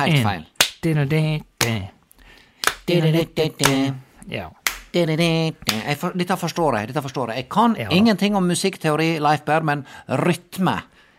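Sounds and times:
speech: 0.0 - 2.0, 2.9 - 10.9
rhythmic hand clapping on the beat: 0.1 - 1.0, 1.6 - 1.9, 2.5 - 3.9, 4.6 - 6.1.

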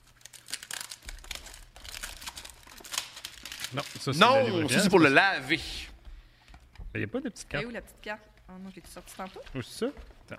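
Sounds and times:
crinkling and tearing of packaging as an item is unwrapped: 0.0 - 4.8
speech: 3.7 - 5.9, 7.0 - 10.3.

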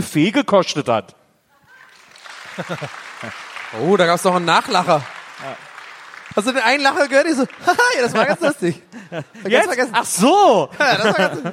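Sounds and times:
speech: 0.0 - 1.2, 2.6 - 5.7, 6.4 - 11.5
live audience applause: 1.9 - 8.8
laughter: 2.3 - 3.5, 7.0 - 11.5.

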